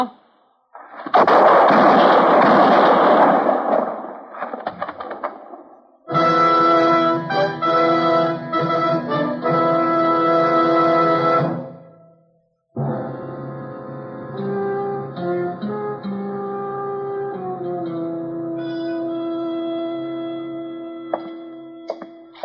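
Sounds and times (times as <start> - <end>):
gunshots in a Gunsmoke radio western drama: 0.8 - 5.9
music: 6.1 - 22.4.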